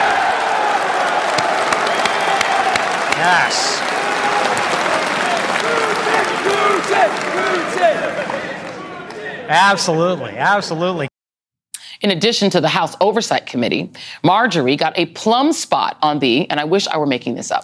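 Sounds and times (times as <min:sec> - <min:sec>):
large conference audience clapping: 0:00.0 - 0:09.4
speech: 0:03.2 - 0:03.8, 0:06.9 - 0:08.6, 0:09.5 - 0:11.1, 0:12.0 - 0:17.6.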